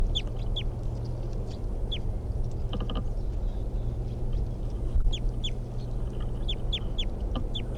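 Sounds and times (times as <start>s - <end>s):
wild bird calling with downward-sliding chirps: 0.0s - 0.7s, 5.0s - 7.7s
low rumbling background: 0.0s - 7.7s.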